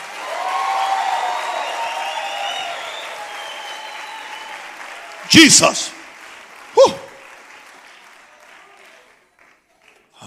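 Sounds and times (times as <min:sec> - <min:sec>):
audience applauding loudly: 0:00.0 - 0:10.2
speech: 0:05.3 - 0:06.0.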